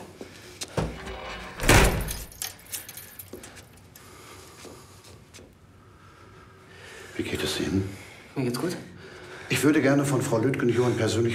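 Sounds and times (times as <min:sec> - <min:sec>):
door shutting: 0:00.7 - 0:02.4
faint clinking and small handling noises: 0:01.0 - 0:04.0
keys jangling: 0:01.5 - 0:04.0
speech: 0:07.2 - 0:08.9, 0:09.6 - 0:11.3.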